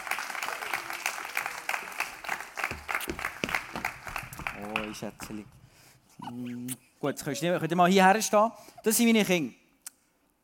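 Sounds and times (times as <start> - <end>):
audience clapping: 0.0 - 5.6
speech: 4.6 - 5.6, 6.2 - 9.6.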